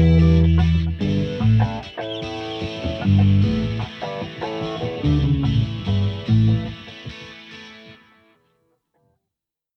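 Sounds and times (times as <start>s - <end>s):
looping bass jump: 0.0s - 1.9s, 2.9s - 3.9s, 5.0s - 6.8s.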